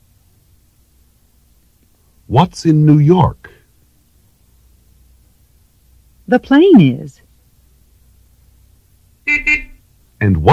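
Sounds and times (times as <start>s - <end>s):
speech: 2.3s - 3.5s, 6.3s - 7.3s, 9.3s - 10.5s
car horn honking: 9.3s - 9.8s.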